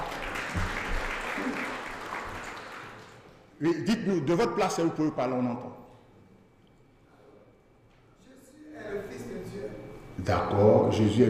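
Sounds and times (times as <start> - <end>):
audience applause: 0.0 - 3.3
speech: 3.6 - 5.8, 10.3 - 11.2.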